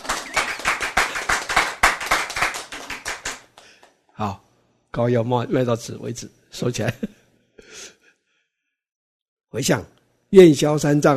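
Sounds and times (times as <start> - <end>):
audience clapping hands: 0.0 - 4.0
speech: 4.2 - 7.2, 9.6 - 11.1.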